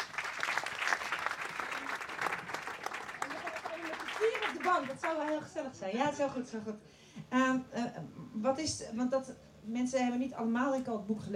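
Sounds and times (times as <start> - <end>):
audience applause: 0.0 - 5.5
speech: 4.5 - 11.3.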